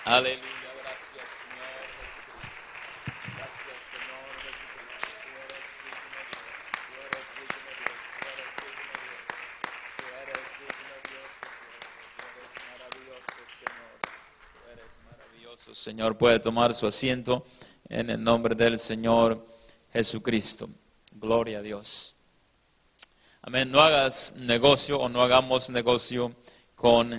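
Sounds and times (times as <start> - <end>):
audience applause: 0.0 - 15.6
speech: 0.1 - 0.6, 15.6 - 22.2, 23.4 - 27.1.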